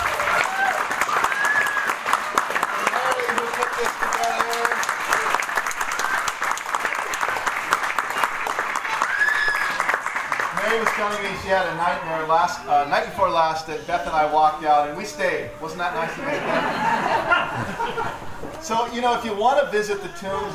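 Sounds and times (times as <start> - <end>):
cheers and whistles: 0.0 - 3.6, 5.2 - 6.4, 8.2 - 9.9
audience applause: 0.0 - 12.0
speech: 11.0 - 20.5
laughter: 15.8 - 18.6.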